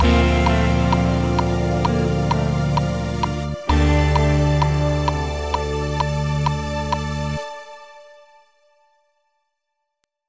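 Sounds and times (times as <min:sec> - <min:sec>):
post disco guitar: 0:00.0 - 0:07.4.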